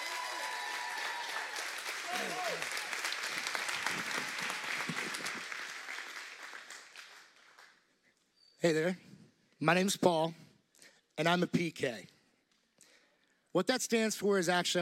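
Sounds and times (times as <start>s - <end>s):
audience applause welcoming a speaker onto the stage: 0.0s - 7.8s
speech: 8.6s - 10.4s, 11.2s - 12.1s, 13.5s - 14.8s.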